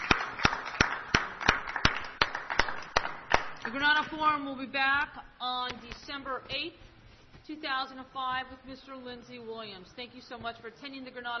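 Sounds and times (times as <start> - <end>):
audience applause: 0.0 - 3.7
speech: 3.7 - 6.9, 7.5 - 11.3.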